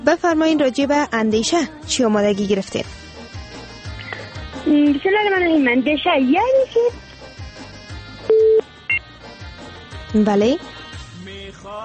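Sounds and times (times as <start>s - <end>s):
speech: 0.0s - 3.1s, 4.6s - 7.0s, 10.1s - 10.8s, 11.5s - 11.8s
telephone line tone after a call was cut off: 8.3s - 8.6s.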